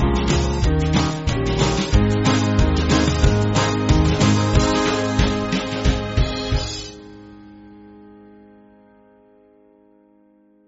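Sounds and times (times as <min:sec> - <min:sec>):
band backing music: 0:00.0 - 0:07.5.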